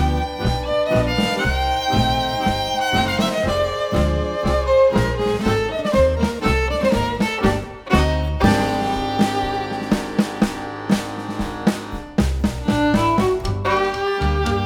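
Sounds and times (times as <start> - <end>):
contemporary nuevo tango violin music: 0.0 - 14.6.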